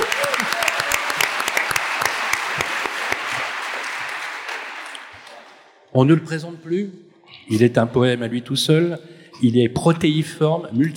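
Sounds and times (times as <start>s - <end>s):
audience applause and ovation: 0.0s - 5.7s
speech: 6.0s - 10.9s.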